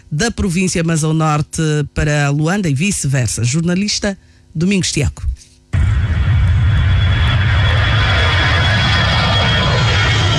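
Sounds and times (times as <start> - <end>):
speech: 0.1 - 5.4
airplane engine roaring: 5.8 - 10.3.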